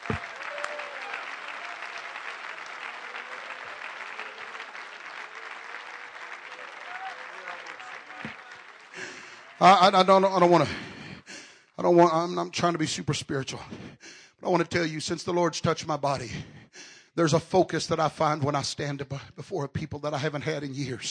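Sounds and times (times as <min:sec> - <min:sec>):
audience clapping: 0:00.0 - 0:11.7
speech: 0:00.1 - 0:00.3, 0:09.6 - 0:10.9, 0:11.8 - 0:13.8, 0:14.4 - 0:16.6, 0:17.2 - 0:21.0
man speaking loudly: 0:09.6 - 0:10.8, 0:11.8 - 0:13.8, 0:14.4 - 0:16.5, 0:17.2 - 0:21.0.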